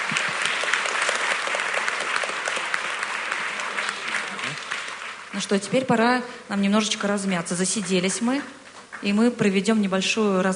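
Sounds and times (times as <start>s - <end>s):
group applause during a gathering circle: 0.0s - 5.5s
speech: 5.4s - 10.5s.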